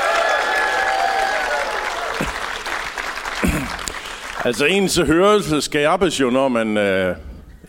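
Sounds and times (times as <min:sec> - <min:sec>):
faint whistles or cheers: 0:00.0 - 0:02.2
audience applause: 0:00.0 - 0:05.1
speech: 0:04.4 - 0:07.6.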